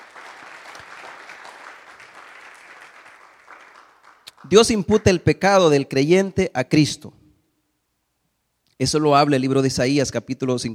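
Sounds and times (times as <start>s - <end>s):
audience applause: 0.0s - 4.6s
speech: 4.4s - 7.2s, 8.8s - 10.7s.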